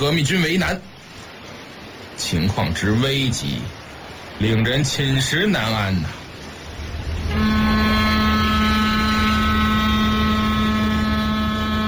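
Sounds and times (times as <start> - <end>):
speech: 0.0 - 0.9, 2.2 - 6.2
low mechanical hum: 6.2 - 11.8
large cargo ship horn blaring: 6.6 - 11.8
rumbling ship engine drone: 6.6 - 11.8.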